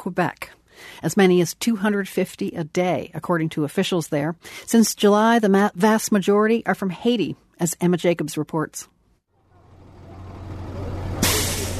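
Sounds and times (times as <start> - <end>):
speech: 0.0 - 8.9
yellow school bus pulling up and idling outside a YMCA shelter in Montreal: 9.3 - 11.7.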